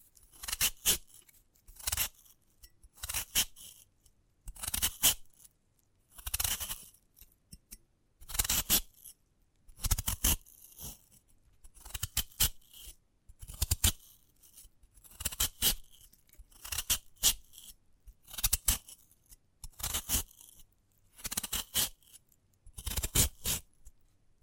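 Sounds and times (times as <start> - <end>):
sprouted coconut scraping and cutting: 0.3 - 2.3, 3.0 - 3.9, 4.5 - 5.4, 6.1 - 6.9, 8.3 - 9.1, 9.8 - 11.0, 15.0 - 19.0, 19.6 - 20.6, 21.2 - 22.2, 22.8 - 23.7.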